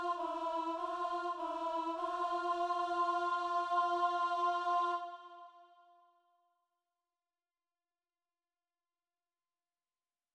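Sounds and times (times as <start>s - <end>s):
alto choral piece: 0.0s - 5.8s.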